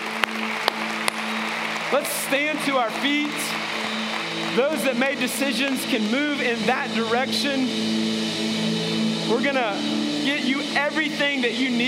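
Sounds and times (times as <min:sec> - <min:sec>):
church audience applauding: 0:00.0 - 0:08.7
speech: 0:01.9 - 0:03.7, 0:04.4 - 0:11.8.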